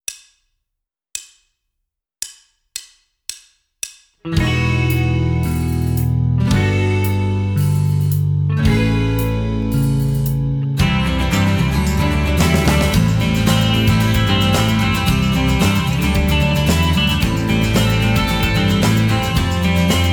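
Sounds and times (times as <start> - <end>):
rhythm guitar: 4.3 - 20.1.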